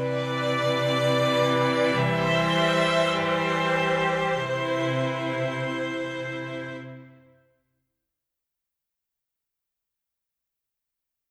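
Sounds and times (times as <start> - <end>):
sleepy strings: 0.0 - 7.1.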